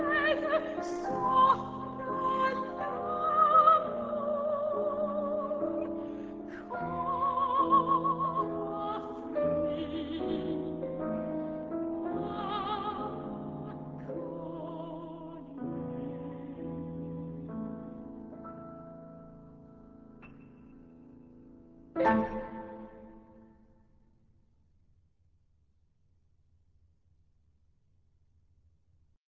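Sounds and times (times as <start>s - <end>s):
violin: 0.0s - 18.2s, 22.0s - 23.4s.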